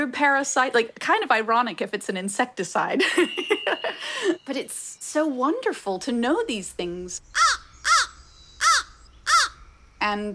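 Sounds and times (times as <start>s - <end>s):
speech: 0.0s - 7.5s, 10.0s - 10.3s
crow cawing with harsh hoarse caws: 7.3s - 9.8s.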